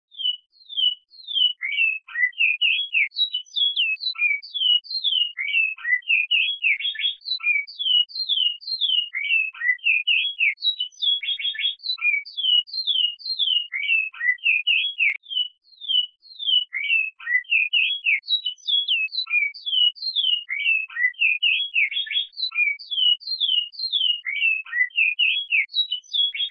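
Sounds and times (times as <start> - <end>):
tesourinha bird singing: 0.1 - 26.4.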